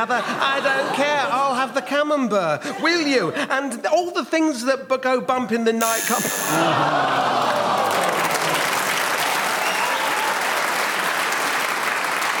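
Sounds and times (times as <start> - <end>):
laughter: 0.0 - 3.8, 6.4 - 8.6
speech: 0.0 - 8.1
audience applause: 6.6 - 12.3.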